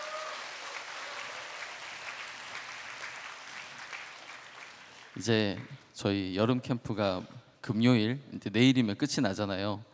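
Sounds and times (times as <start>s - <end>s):
audience applause: 0.0s - 5.2s
speech: 5.2s - 9.9s.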